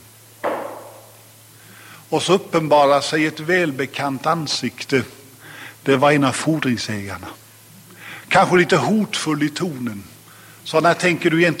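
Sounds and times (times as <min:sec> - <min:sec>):
knocking on a door: 0:00.4 - 0:01.0
speech: 0:02.1 - 0:05.2, 0:05.8 - 0:07.4, 0:08.3 - 0:11.5.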